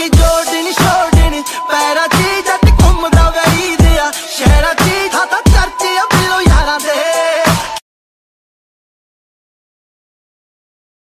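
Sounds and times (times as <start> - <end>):
Punjabi tune ringtone: 0.1 - 7.8.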